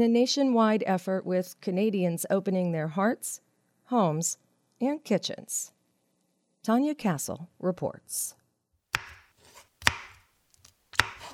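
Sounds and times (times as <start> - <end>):
speech: 0.0 - 5.8, 6.6 - 8.4
knife chopping zucchini on a board in a downtown Toronto kitchen: 8.9 - 11.3.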